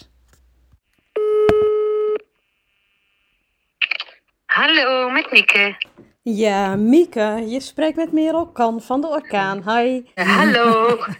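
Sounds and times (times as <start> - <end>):
telephone dialing and ringing tone: 1.2 - 3.1
speech: 4.6 - 11.1
laughter: 10.2 - 11.1.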